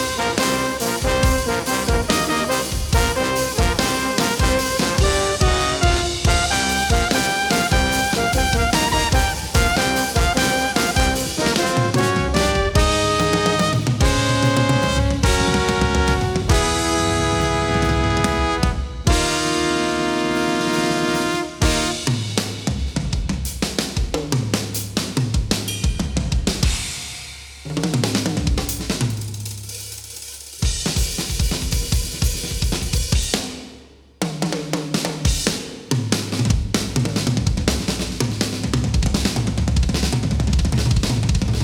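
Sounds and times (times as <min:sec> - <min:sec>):
brass: 0:00.0 - 0:22.8
drums: 0:00.0 - 0:41.6.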